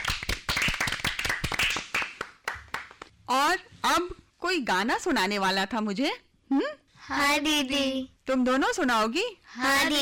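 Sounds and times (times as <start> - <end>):
loud clapping: 0.0 - 3.1
speech: 3.3 - 10.0.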